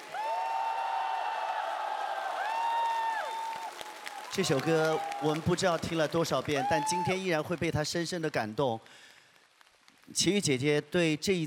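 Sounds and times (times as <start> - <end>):
high sustained whoops and shouts from audience: 0.0 - 5.5, 6.4 - 7.3
large audience clapping: 0.0 - 10.6
speech: 4.4 - 9.1, 10.1 - 11.4.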